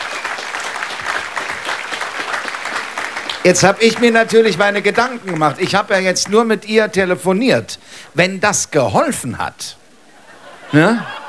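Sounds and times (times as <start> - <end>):
audience applause: 0.0 - 6.5
speech: 3.4 - 9.8, 10.7 - 11.2
laughter: 10.1 - 11.2.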